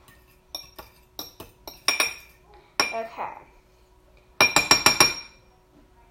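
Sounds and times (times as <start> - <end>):
fork beating eggs in a bowl: 0.0 - 3.0
speech: 3.0 - 3.5.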